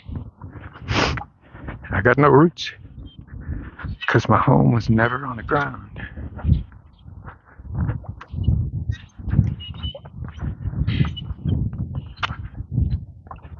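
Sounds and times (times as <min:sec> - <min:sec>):
speech: 0:02.0 - 0:02.8, 0:04.1 - 0:06.2
starlings calling: 0:02.8 - 0:07.6, 0:08.2 - 0:12.6.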